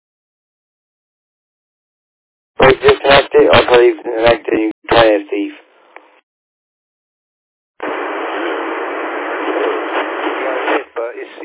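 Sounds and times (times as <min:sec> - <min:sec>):
noisy amateur radio signal: 0:02.6 - 0:05.6, 0:07.8 - 0:11.4
speech: 0:02.7 - 0:05.6.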